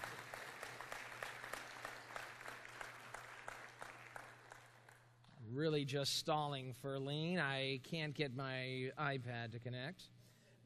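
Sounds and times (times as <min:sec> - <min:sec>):
audience round of applause: 0:00.0 - 0:05.1
speech: 0:05.5 - 0:10.2.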